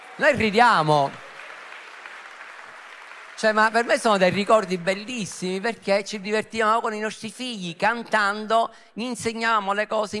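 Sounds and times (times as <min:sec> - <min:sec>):
audience applause: 0:00.0 - 0:05.7
speech: 0:00.2 - 0:01.2, 0:03.4 - 0:10.1.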